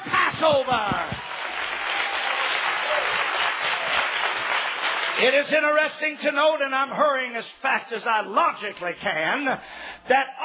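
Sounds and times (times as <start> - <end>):
rousing hand clap of appreciation: 0.0 - 5.2
speech: 0.4 - 1.0, 5.2 - 10.4.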